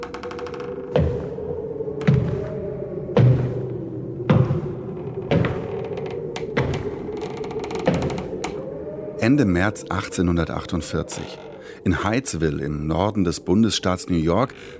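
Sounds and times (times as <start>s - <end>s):
low droning hum: 0.0s - 11.8s
strange hollow wooden knocks: 0.1s - 1.4s, 4.3s - 8.6s
speech: 9.2s - 14.7s.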